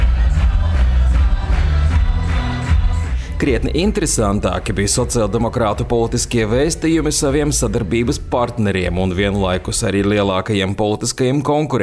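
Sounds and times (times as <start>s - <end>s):
congress delegates applauding: 0.0s - 4.3s
speech: 3.4s - 11.8s.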